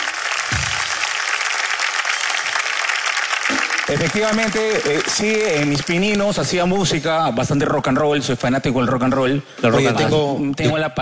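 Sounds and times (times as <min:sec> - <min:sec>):
audience applause: 0:00.0 - 0:06.8
speech: 0:03.9 - 0:11.0.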